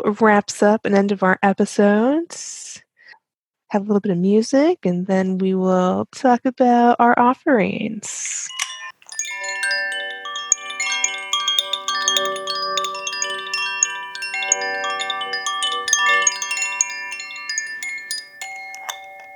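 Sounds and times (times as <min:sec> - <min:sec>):
speech: 0:00.0 - 0:02.8, 0:03.7 - 0:08.6
chimes: 0:08.6 - 0:19.3.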